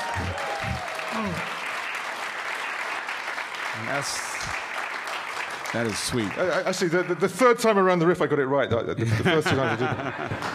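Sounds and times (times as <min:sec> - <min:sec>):
audience applause: 0:00.0 - 0:07.7, 0:10.0 - 0:10.5
speech: 0:01.2 - 0:01.5, 0:03.8 - 0:04.6, 0:05.7 - 0:10.5
laughter: 0:09.0 - 0:10.5.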